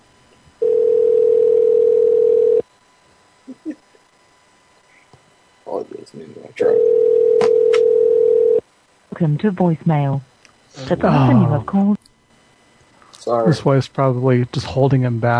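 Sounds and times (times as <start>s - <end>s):
ringback tone of an outgoing telephone call: 0.6s - 2.6s, 6.7s - 8.6s
speech: 9.2s - 12.0s, 13.3s - 15.3s.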